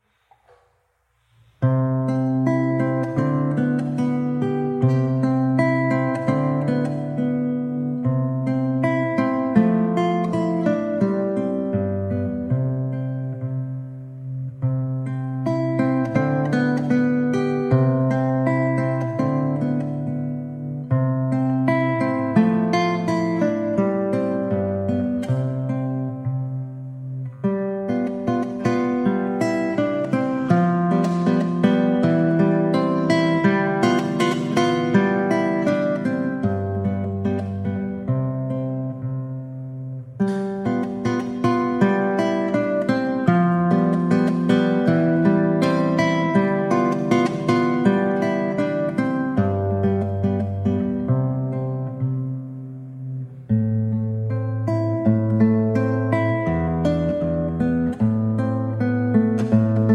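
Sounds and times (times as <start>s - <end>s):
violão playing poco allegretto: 0.0s - 59.9s.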